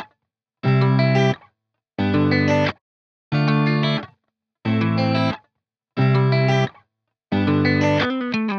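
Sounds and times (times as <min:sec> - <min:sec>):
guitar playing A minor chords loop: 0:00.0 - 0:01.4, 0:02.0 - 0:05.4, 0:06.0 - 0:08.5.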